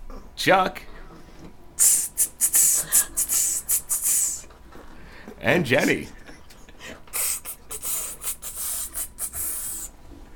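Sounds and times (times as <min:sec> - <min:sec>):
speech: 0:00.4 - 0:00.9, 0:01.8 - 0:02.0, 0:05.4 - 0:06.2
voice imitating a snake hissing: 0:01.8 - 0:04.5, 0:07.1 - 0:10.0.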